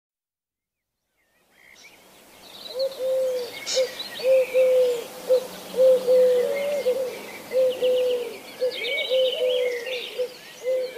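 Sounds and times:
Eurasian collared dove cooing: 2.7 - 10.9.

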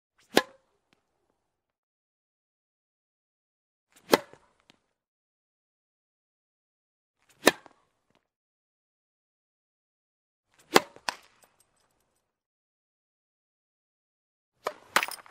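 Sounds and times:
tennis: 0.2 - 1.2, 4.0 - 4.8, 7.3 - 8.1, 10.6 - 11.4.

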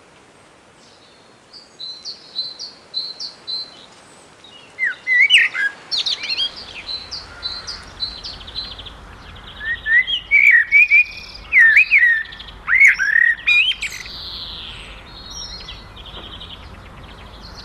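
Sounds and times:
common blackbird singing: 0.9 - 17.6.

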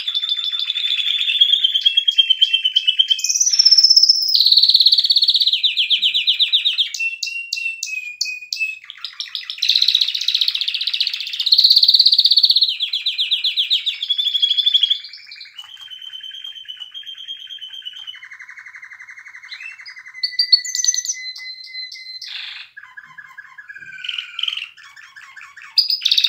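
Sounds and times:
canary song: 0.0 - 26.2.

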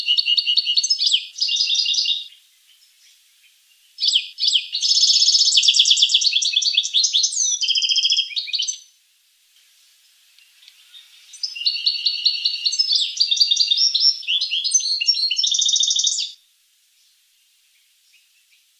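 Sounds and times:
finch trilling song: 0.0 - 2.4, 4.0 - 8.9, 10.6 - 16.4.

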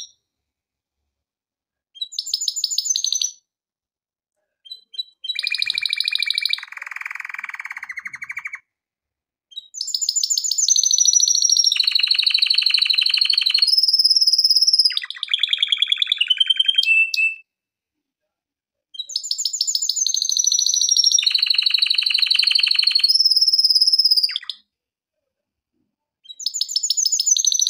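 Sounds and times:
canary song with rolling trills: 2.0 - 3.4, 4.7 - 8.6, 9.5 - 17.4, 19.0 - 24.6, 26.2 - 27.6.

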